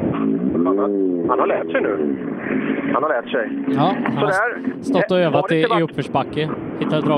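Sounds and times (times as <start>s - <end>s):
rally car engine revving: 0.1s - 5.1s
speech: 0.7s - 7.1s.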